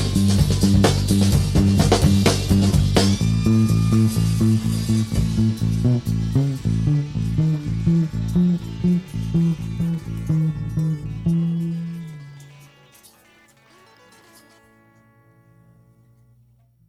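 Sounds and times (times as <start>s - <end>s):
bass drums song stems: 0.0s - 12.1s.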